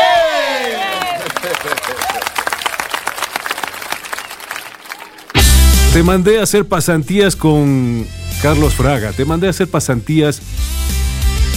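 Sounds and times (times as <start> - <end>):
applause: 0.2 - 5.4
speech: 6.0 - 10.6.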